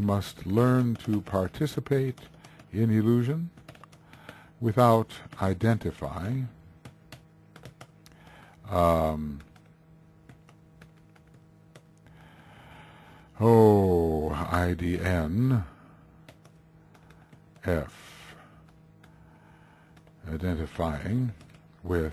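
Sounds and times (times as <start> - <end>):
speech: 0.0 - 3.6, 4.6 - 6.6, 8.7 - 9.5, 13.4 - 15.7, 17.6 - 18.0, 20.3 - 22.1
typing on a computer keyboard: 0.0 - 8.2, 9.3 - 12.0, 16.2 - 17.8, 19.9 - 22.1.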